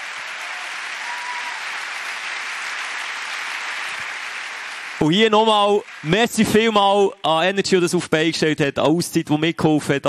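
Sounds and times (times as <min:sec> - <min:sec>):
audience applause: 0:00.0 - 0:07.1
speech: 0:05.0 - 0:10.0.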